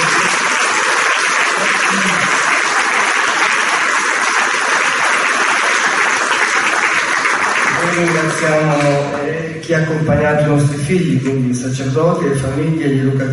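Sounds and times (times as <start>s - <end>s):
audience applause: 0.0s - 9.2s
speech: 8.0s - 13.3s.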